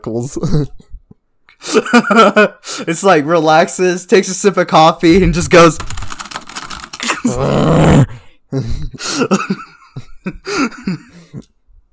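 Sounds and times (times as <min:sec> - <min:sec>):
speech: 0:00.0 - 0:00.9, 0:01.6 - 0:06.2, 0:07.3 - 0:11.5
loud vocal growl: 0:07.2 - 0:08.2.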